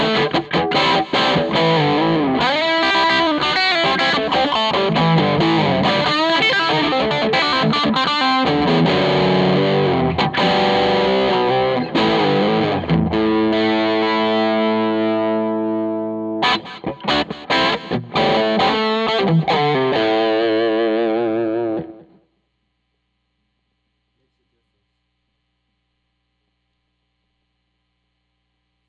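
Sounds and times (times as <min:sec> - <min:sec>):
thick overdriven electric guitar through amp: 0:00.0 - 0:22.2.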